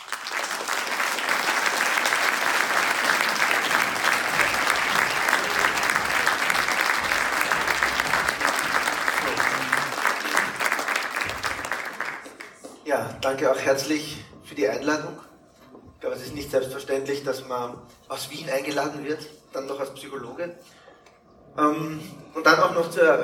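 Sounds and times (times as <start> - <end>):
audience applauding a guest speaker onstage: 0.0 - 12.8
speech: 13.2 - 15.3, 16.1 - 20.8, 21.6 - 23.2.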